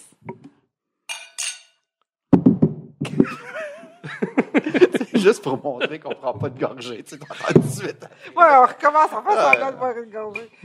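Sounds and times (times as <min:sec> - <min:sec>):
glasses clinking in a toast: 0:01.1 - 0:01.8
laughter: 0:03.0 - 0:09.8
speech: 0:04.7 - 0:10.6.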